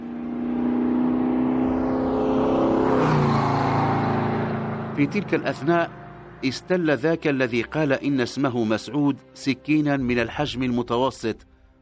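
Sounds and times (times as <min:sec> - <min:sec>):
car overtaking a truck and speeding away: 0:00.0 - 0:07.1
speech: 0:05.0 - 0:11.5.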